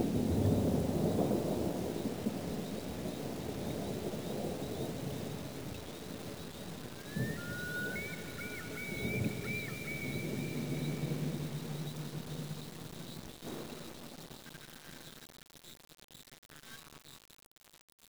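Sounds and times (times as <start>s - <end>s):
thunder: 0.0s - 14.0s.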